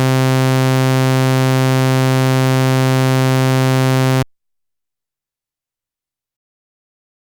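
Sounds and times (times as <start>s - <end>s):
triangle saw and square synthesizer waveforms: 0.2s - 4.2s.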